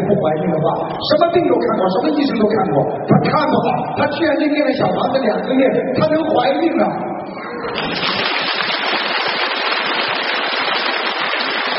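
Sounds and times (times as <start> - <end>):
speech: 0.1 - 8.6
large audience applause: 7.7 - 11.7.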